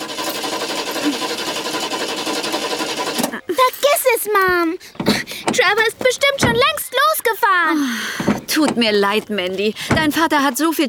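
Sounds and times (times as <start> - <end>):
car engine failing to start: 0.0 - 3.6, 4.8 - 6.7, 7.9 - 8.9
speech: 3.7 - 10.8.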